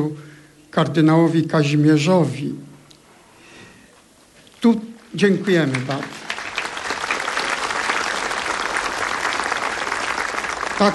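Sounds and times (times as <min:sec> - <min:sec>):
speech: 0:00.0 - 0:02.7, 0:04.6 - 0:06.2
audience applause: 0:05.0 - 0:10.9.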